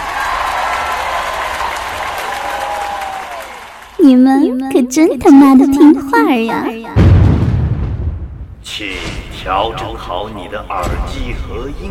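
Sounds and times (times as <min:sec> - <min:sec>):
enthusiastic applause: 0:00.0 - 0:04.0
speech: 0:04.0 - 0:07.1, 0:08.8 - 0:11.8.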